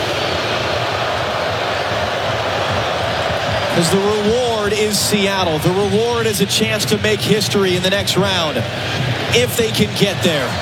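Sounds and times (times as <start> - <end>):
stadium crowd roaring: 0.0 - 10.6
speech: 3.8 - 10.6.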